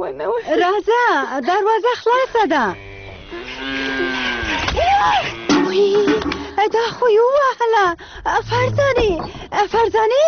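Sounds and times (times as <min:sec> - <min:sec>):
speech: 0:00.0 - 0:02.9, 0:05.0 - 0:10.2
cow mooing: 0:02.6 - 0:06.4.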